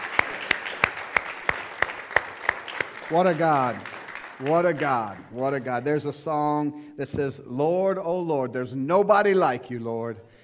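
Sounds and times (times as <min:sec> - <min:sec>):
dense wash of scattered applause: 0:00.0 - 0:05.7
audience clapping in unison in a steady rhythm: 0:00.0 - 0:06.1
speech: 0:03.1 - 0:10.3.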